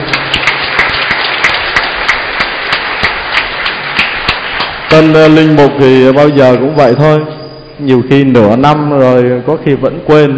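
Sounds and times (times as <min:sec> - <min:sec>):
crowd applauding: 0:00.0 - 0:05.6
speech: 0:05.0 - 0:10.3.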